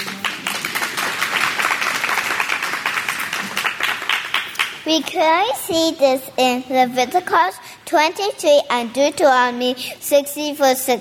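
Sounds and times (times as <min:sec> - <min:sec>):
crowd applauding: 0:00.0 - 0:04.9
speech: 0:04.9 - 0:10.9.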